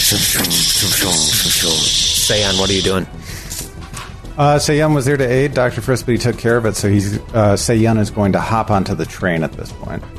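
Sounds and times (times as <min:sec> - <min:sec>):
person imitating mooring clamps hissing as they disengage: 0:00.0 - 0:03.7
speech: 0:00.1 - 0:03.3, 0:04.4 - 0:10.1.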